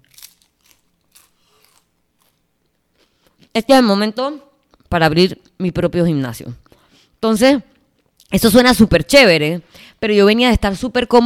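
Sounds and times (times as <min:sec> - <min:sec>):
chewing and crunching food: 0:00.0 - 0:03.5
speech: 0:03.6 - 0:06.6, 0:07.2 - 0:07.7, 0:08.3 - 0:11.2.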